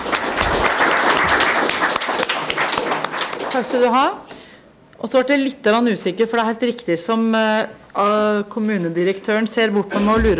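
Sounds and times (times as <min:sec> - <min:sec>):
audience applause: 0:00.0 - 0:03.8
speech: 0:03.6 - 0:04.3, 0:05.0 - 0:10.3.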